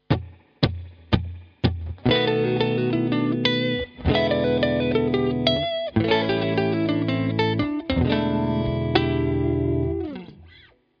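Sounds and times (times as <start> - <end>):
blues guitar: 0.0 - 10.8.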